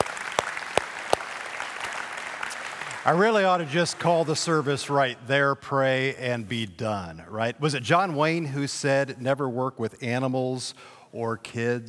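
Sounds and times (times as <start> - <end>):
audience applause: 0.0 - 5.0
speech: 3.0 - 11.8.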